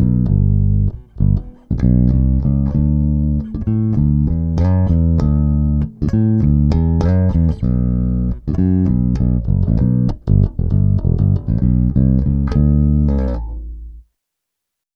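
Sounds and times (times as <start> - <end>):
basses in soul music: 0.0 - 14.0.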